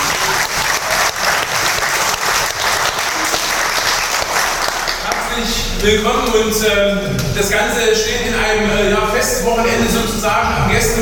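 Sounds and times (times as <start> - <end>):
audience applause: 0.0 - 5.4
speech: 5.8 - 11.0.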